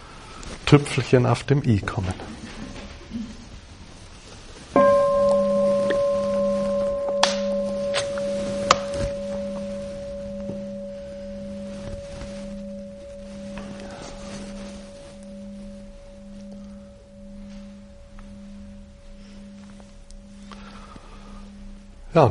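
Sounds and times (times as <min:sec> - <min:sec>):
speech: 0:00.7 - 0:02.4
bell ringing: 0:04.8 - 0:22.2.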